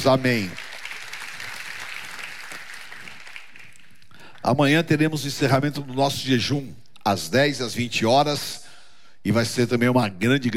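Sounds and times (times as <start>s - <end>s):
speech: 0.0s - 0.6s, 4.4s - 8.6s, 9.2s - 10.5s
audience applause: 0.0s - 4.5s.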